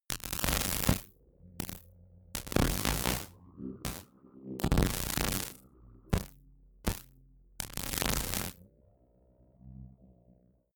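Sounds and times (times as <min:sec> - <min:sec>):
science fiction crackle sequence: 0:00.0 - 0:08.6.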